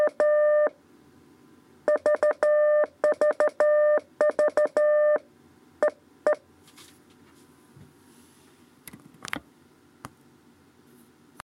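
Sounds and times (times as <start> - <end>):
CW telegraphy morse code lesson: 0.0 - 0.7, 1.9 - 5.2.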